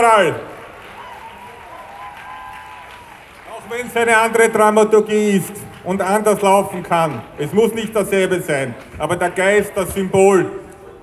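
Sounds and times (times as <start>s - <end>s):
speech: 0.0s - 0.5s, 3.7s - 11.0s
crowd applause at demonstration: 0.0s - 11.0s.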